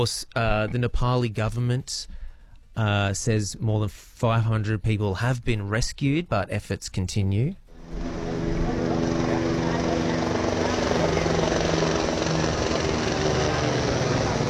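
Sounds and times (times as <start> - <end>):
speech: 0.0 - 2.2, 2.8 - 8.3
helicopter flying overhead: 7.7 - 14.4.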